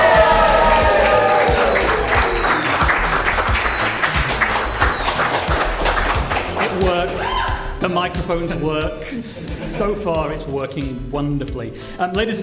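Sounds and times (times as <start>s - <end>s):
live studio audience whooping and shouting: 0.0s - 5.2s, 7.1s - 7.7s
live studio audience applause: 0.0s - 7.2s
speech: 8.0s - 12.4s.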